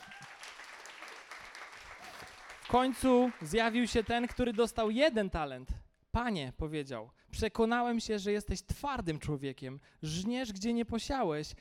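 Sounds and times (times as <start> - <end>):
audience applauding a participant: 0.0 - 4.6
speech: 2.7 - 11.5.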